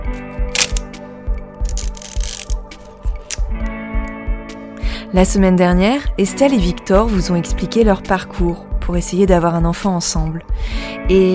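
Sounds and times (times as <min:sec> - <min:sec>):
steady tonal background: 0:00.0 - 0:07.5
film camera shutter clicks: 0:00.5 - 0:00.9
speech: 0:05.1 - 0:11.3.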